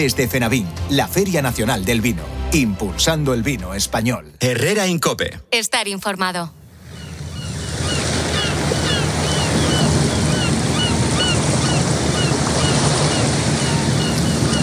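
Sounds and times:
speech: 0.0 - 6.6
harbour water washing at the port of Isla Cristina: 6.7 - 14.6
faint high chirping calls: 6.9 - 14.6.

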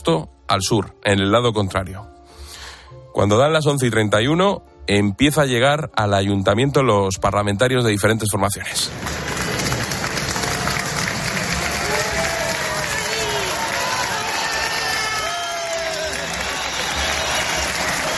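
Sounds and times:
speech: 0.0 - 2.2, 3.2 - 9.3
crowd applauding arriving politicians: 8.9 - 18.1
cheers and shouted voices: 9.2 - 18.1.

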